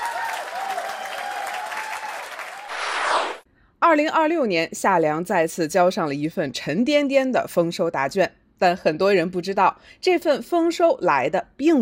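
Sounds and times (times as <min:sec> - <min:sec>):
applause: 0:00.0 - 0:02.8
speech: 0:03.9 - 0:11.8.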